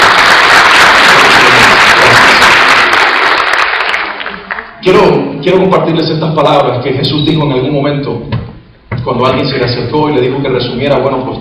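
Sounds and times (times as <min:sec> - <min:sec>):
audience applause: 0:00.0 - 0:04.8
speech: 0:04.8 - 0:08.4, 0:09.0 - 0:11.3.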